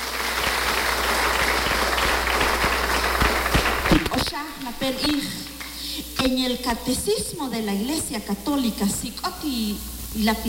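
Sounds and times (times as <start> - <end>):
audience applause: 0.0 - 5.6
speech: 3.9 - 5.5, 6.2 - 10.4.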